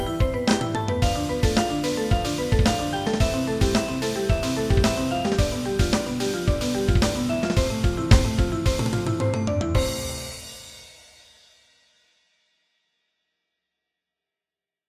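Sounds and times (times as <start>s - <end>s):
funk music: 0.0s - 10.7s.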